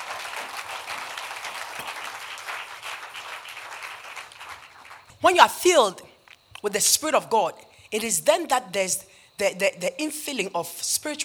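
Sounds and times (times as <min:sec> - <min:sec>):
audience clapping hands: 0:00.0 - 0:05.1
speech: 0:05.2 - 0:06.0, 0:06.6 - 0:11.2.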